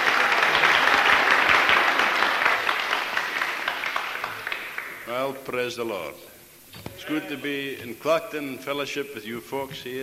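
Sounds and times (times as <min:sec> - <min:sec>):
audience clapping hands: 0:00.0 - 0:05.2
speech: 0:05.5 - 0:06.3, 0:07.1 - 0:10.0.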